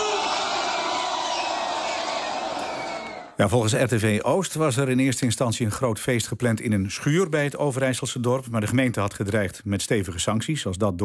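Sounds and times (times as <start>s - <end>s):
large party crowd applauding and cheering: 0.0s - 3.4s
speech: 3.4s - 11.0s.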